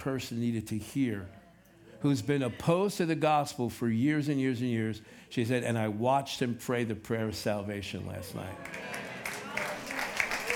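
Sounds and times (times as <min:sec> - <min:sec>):
speech: 0:00.0 - 0:01.4, 0:02.0 - 0:09.0
audience clapping: 0:08.4 - 0:10.5.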